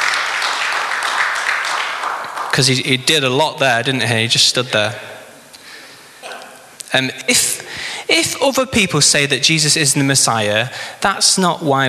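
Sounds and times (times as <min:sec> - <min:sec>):
round of applause: 0:00.0 - 0:02.8
speech: 0:02.6 - 0:05.1, 0:06.9 - 0:07.5, 0:08.1 - 0:11.8.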